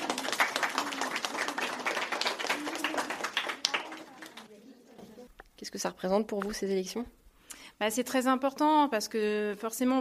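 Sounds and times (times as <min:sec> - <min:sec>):
students applauding elected class delegates: 0:00.0 - 0:04.5
speech: 0:05.7 - 0:07.2, 0:07.8 - 0:09.9.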